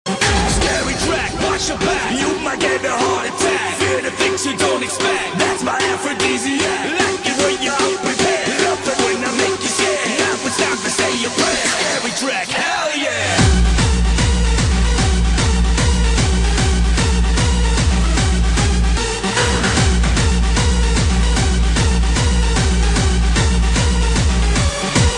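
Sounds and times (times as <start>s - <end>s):
scary music: 0.1s - 25.1s.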